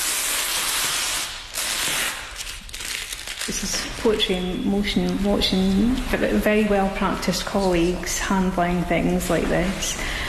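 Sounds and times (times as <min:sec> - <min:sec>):
paper tape being peeled while unwrapping a Monet: 0:00.0 - 0:03.8
speech: 0:03.5 - 0:10.2.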